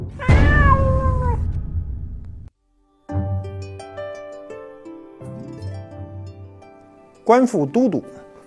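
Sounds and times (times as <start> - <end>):
domestic cat meowing loudly: 0.2 - 1.6
speech: 7.3 - 8.2.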